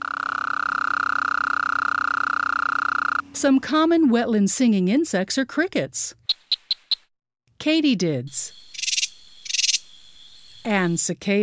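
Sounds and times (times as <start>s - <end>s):
Gulf Coast toad calling in Texas after rain: 0.0s - 3.2s, 8.5s - 11.0s
speech: 3.4s - 6.2s, 7.6s - 8.6s, 10.6s - 11.4s.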